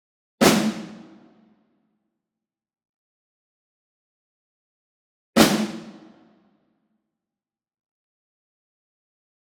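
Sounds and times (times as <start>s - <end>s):
medium snare drum ensemble group hit: 0.4s - 1.2s, 5.4s - 6.1s.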